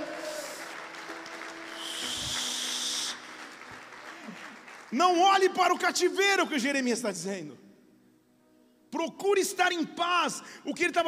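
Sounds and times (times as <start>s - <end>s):
crowd clapping: 0.0s - 6.0s
speech: 4.9s - 7.6s, 9.0s - 11.0s.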